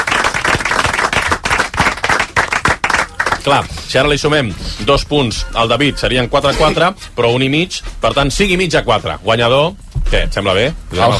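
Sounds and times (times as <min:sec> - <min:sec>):
applause: 0:00.0 - 0:03.9
speech: 0:03.4 - 0:11.1.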